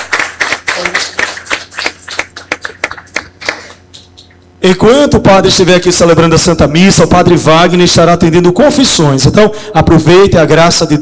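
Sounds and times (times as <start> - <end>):
crowd applauding warmly: 0.0 - 4.3
speech: 4.6 - 11.0.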